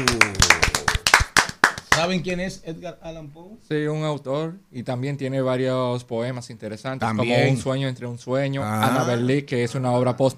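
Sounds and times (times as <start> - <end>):
clapping applause: 0.0 - 2.1
speech: 2.0 - 10.3.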